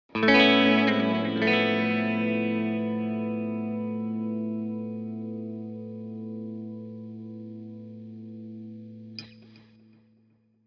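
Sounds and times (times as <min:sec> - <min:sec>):
electric guitar: 0:00.0 - 0:10.4.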